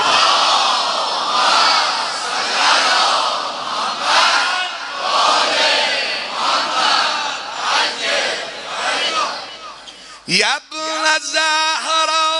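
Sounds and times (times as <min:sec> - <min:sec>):
crowd loudly chanting salawat in unison: 0:00.0 - 0:09.9
speech: 0:10.3 - 0:12.2.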